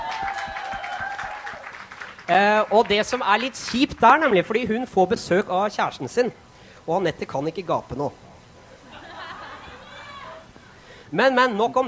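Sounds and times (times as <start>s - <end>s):
applause for a colleague: 0.0s - 4.5s
speech: 2.3s - 8.2s, 11.1s - 11.8s
laughter: 8.8s - 10.5s.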